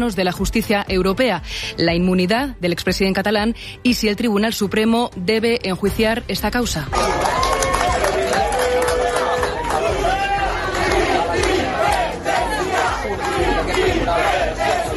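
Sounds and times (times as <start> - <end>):
speech: 0.0 - 7.4
crowd applauding: 6.9 - 14.9
crowd shouting independence chants: 8.3 - 14.9.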